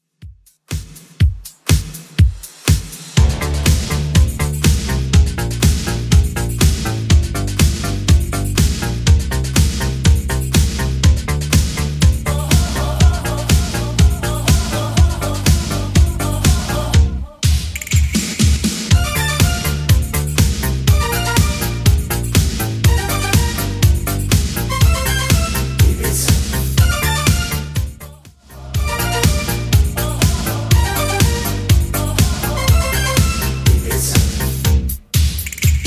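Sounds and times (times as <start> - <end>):
80s drum machine beat: 0.0 - 35.8.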